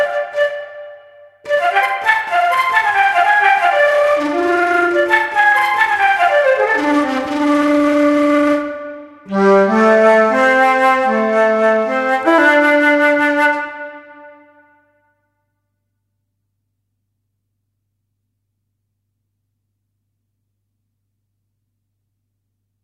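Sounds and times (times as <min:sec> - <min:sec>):
woodwind call: 0:00.0 - 0:14.7.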